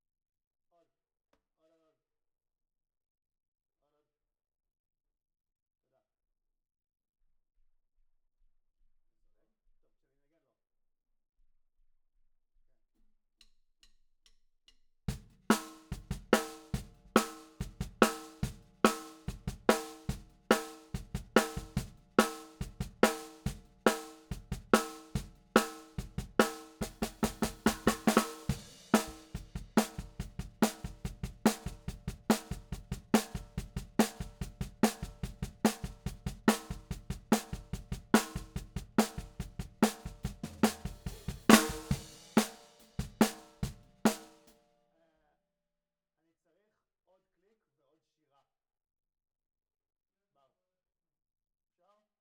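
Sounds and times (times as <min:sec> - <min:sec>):
snare drum: 0:15.1 - 0:44.5.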